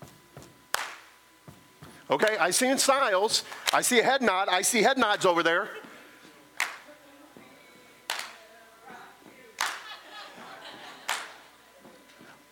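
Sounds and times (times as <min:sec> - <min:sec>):
foot stomps and hand claps: 0:00.0 - 0:02.4, 0:06.6 - 0:06.8, 0:08.1 - 0:08.4, 0:09.2 - 0:12.5
speech: 0:02.1 - 0:05.8
small crowd murmuring and chuckling: 0:08.9 - 0:12.5.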